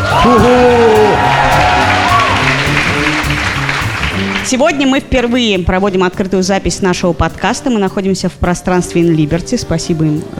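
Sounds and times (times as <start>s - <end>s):
high rising whoops and shouts: 0.0s - 2.5s
live crowd cheering: 0.0s - 4.6s
speech: 0.2s - 1.8s, 4.5s - 10.3s.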